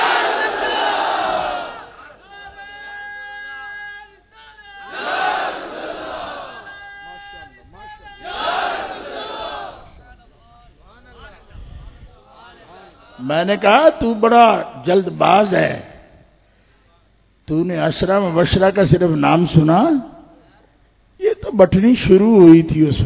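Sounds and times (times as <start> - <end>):
crowd at a religious gathering shouting a slogan: 0.0 - 2.3, 4.8 - 10.0
speech: 13.3 - 15.9, 17.5 - 20.1, 21.5 - 23.0.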